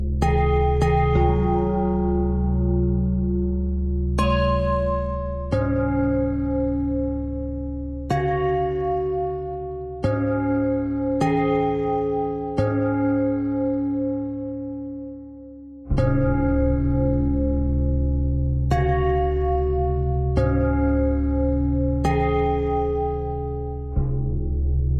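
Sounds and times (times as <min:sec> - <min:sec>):
bell: 0:00.2 - 0:24.8.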